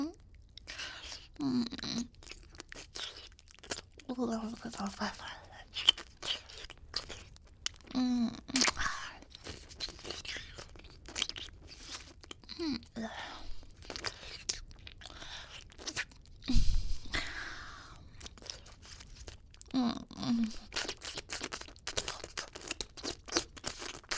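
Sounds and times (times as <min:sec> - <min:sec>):
chewing and eating monster meat: 0:00.0 - 0:24.1.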